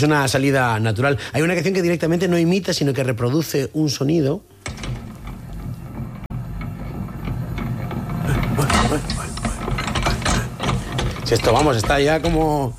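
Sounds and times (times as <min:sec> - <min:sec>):
speech: 0:00.0 - 0:04.8, 0:11.3 - 0:12.7
mixer with rotating arms clattering and whirring: 0:04.8 - 0:12.7.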